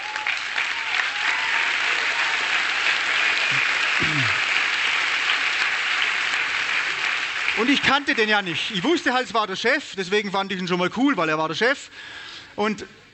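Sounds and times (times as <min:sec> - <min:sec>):
crowd applauding: 0:00.0 - 0:09.0
speech: 0:07.6 - 0:13.0.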